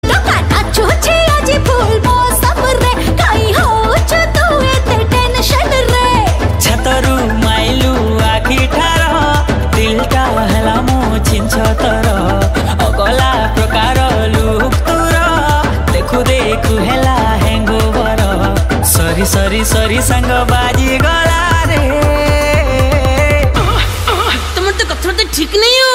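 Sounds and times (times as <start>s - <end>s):
Markundi song: 0.0s - 25.9s.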